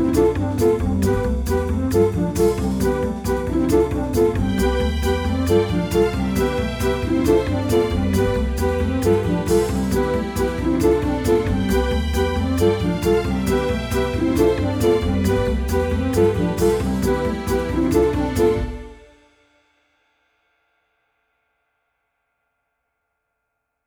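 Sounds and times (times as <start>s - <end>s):
happy game music: 0.0s - 19.0s.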